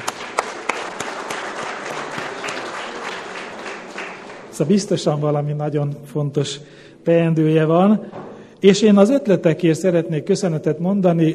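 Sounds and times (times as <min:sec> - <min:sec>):
audience applause: 0:00.0 - 0:04.7
speech: 0:04.6 - 0:11.3.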